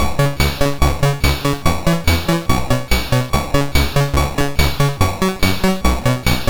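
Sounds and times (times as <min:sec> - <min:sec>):
MOS6581R2 chip synth sample: 0:00.0 - 0:06.4.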